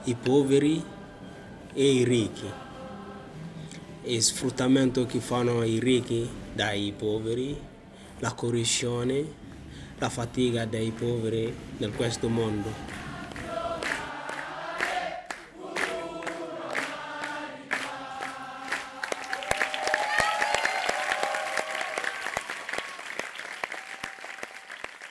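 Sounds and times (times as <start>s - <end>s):
speech: 0.0s - 1.0s, 1.8s - 2.6s, 4.0s - 9.4s, 10.0s - 13.0s
theatre audience applause: 12.9s - 25.0s.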